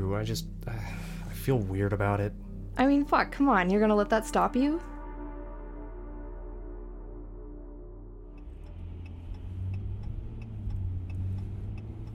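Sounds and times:
speech: 0:00.1 - 0:04.9
car driving down a street lined with orchards outside Emmett: 0:08.2 - 0:12.1
road and rattling noise: 0:08.3 - 0:12.1.

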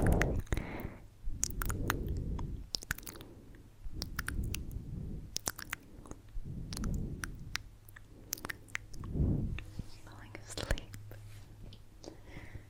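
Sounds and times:
sharp bright mouth clicks and crunchy snaps: 0:00.0 - 0:09.7
faint low hum: 0:00.0 - 0:12.6
wet squishy mouth chewing and smacking: 0:01.4 - 0:09.1.

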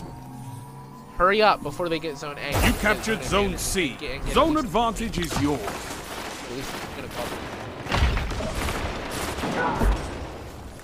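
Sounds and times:
speech: 0:01.2 - 0:05.9, 0:06.5 - 0:07.6, 0:09.6 - 0:10.0
gunfire in a GTA V FiveM zone-capture match: 0:05.1 - 0:10.7.

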